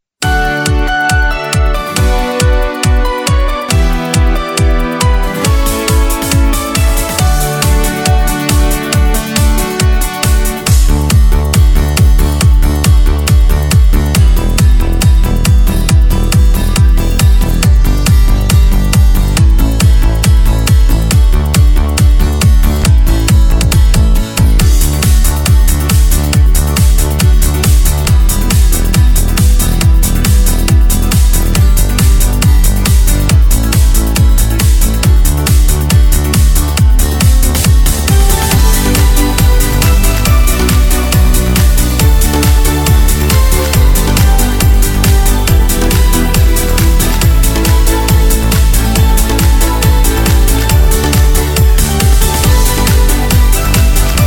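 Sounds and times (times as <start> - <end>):
Korg Pa3X arranger keyboard: 0.2 - 54.2.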